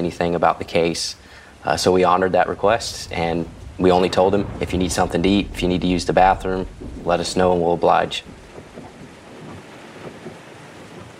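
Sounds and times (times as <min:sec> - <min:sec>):
speech: 0:00.0 - 0:08.4
heavy driving rain: 0:00.0 - 0:11.1
thunder: 0:02.4 - 0:11.1.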